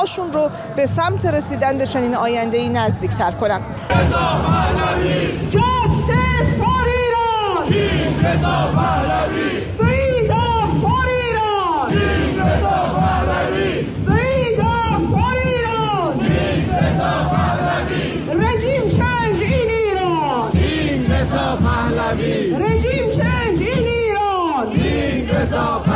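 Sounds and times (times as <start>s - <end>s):
speech: 0.0s - 5.7s, 7.7s - 9.9s
rally crowd chanting slogans: 0.0s - 25.9s.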